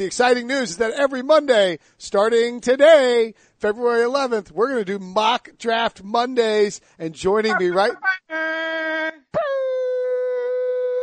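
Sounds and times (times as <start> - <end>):
speech: 0.0 - 9.8
voice imitating air horns: 7.5 - 11.0.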